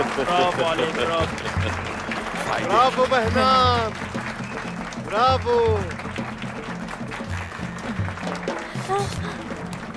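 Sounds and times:
speech: 0.0s - 4.2s, 5.1s - 6.0s, 8.9s - 9.5s
applause for a child receiving a prize: 0.0s - 9.9s.

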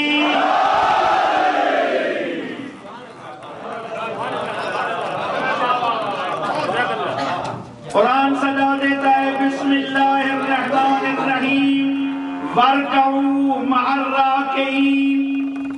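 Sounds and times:
crowd shouting a religious slogan: 0.0s - 2.8s
murmur of many voices: 2.2s - 15.6s.

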